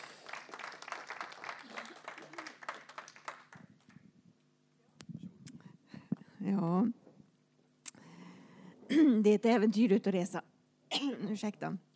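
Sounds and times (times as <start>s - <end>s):
audience applause: 0.0s - 3.9s
speech: 6.4s - 7.0s, 8.9s - 10.5s, 11.3s - 11.9s.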